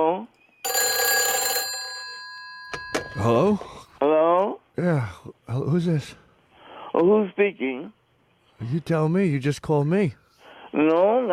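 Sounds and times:
telephone bell ringing at the start of a prank phone call: 0.6 - 3.6
speech: 3.2 - 3.8, 4.8 - 6.2, 7.0 - 8.0, 8.6 - 11.3.

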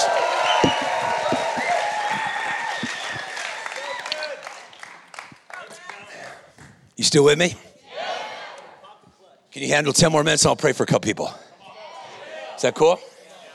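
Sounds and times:
audience clapping and shouting: 0.0 - 6.8
speech: 7.0 - 7.7, 9.6 - 11.4, 12.6 - 13.1.

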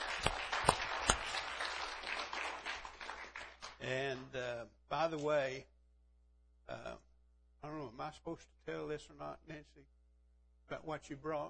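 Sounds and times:
audience applause: 0.0 - 4.2
speech: 5.0 - 5.7, 6.7 - 10.0, 10.7 - 11.4.

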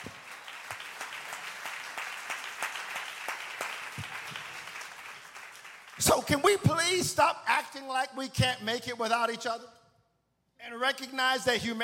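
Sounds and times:
church congregation clapping hands during a sermon: 0.0 - 7.2
speech: 6.0 - 9.8, 10.7 - 11.8.

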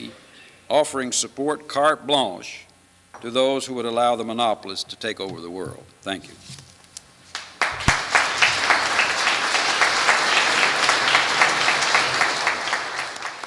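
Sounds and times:
speech: 0.7 - 6.6
audience applause: 7.4 - 13.4.

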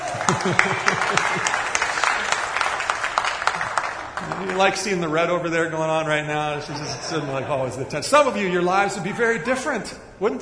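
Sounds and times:
laughter: 0.0 - 2.6, 6.1 - 9.7
audience applause: 0.0 - 5.4
speech: 0.3 - 1.6, 4.4 - 10.3.

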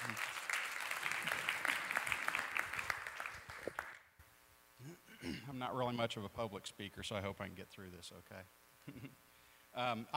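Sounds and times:
church congregation clapping at a Saturday morning service: 0.0 - 4.1
speech: 5.5 - 10.1.

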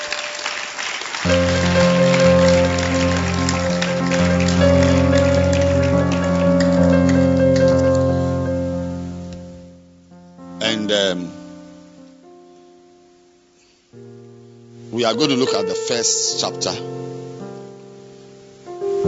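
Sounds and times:
audience applause: 0.0 - 8.4
speech: 10.9 - 11.4, 15.0 - 17.1.

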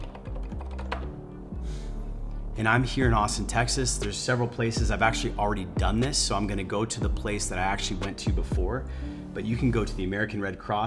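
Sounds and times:
typing on a computer keyboard during a Google search: 0.0 - 1.2
speech: 2.6 - 10.8.

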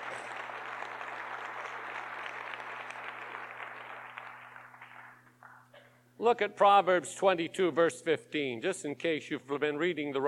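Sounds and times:
audience clapping: 0.0 - 5.7
speech: 6.2 - 10.2.

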